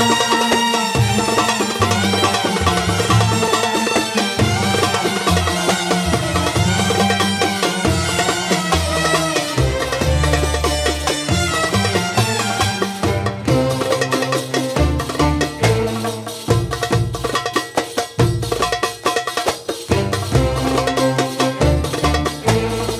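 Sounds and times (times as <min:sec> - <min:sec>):
masmudi kebir rhythm with music: 0:00.0 - 0:22.9.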